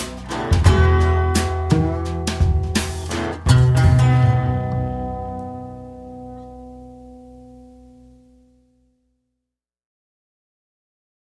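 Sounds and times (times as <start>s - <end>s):
blues music: 0.0s - 8.2s.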